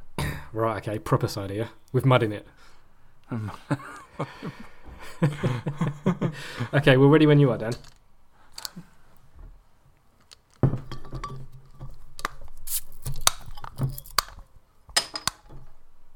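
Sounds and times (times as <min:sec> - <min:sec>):
speech: 0:00.5 - 0:02.7, 0:03.3 - 0:08.0
can being handled or opened: 0:12.2 - 0:14.4.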